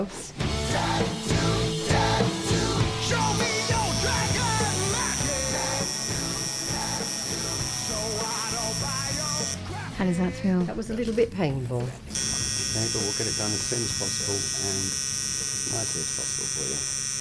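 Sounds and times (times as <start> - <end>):
speech: 0.0 - 1.3, 10.0 - 12.2, 12.8 - 17.0
tattoo machine buzzing: 1.4 - 9.7, 12.1 - 17.1.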